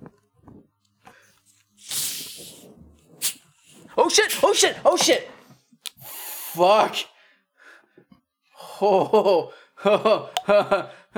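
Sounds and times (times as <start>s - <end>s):
cream soda can cracked open, fizzing over: 1.8s - 2.6s, 3.2s - 3.7s, 5.8s - 6.6s
spray spurt from a cream soda can: 1.8s - 4.6s
speech: 4.1s - 5.3s, 6.6s - 7.1s, 8.8s - 11.1s.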